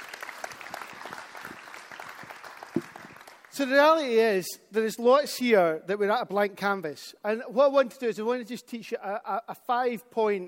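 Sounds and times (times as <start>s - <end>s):
audience applause: 0.0s - 3.5s
speech: 3.6s - 10.4s.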